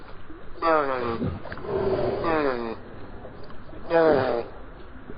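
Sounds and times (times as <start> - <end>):
dolphin chatter: 0.6 - 4.6.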